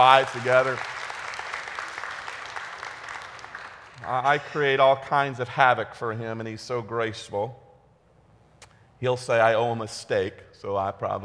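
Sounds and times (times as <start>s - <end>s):
speech: 0.0s - 1.0s, 4.0s - 7.6s, 9.0s - 11.2s
audience applause: 0.0s - 4.2s.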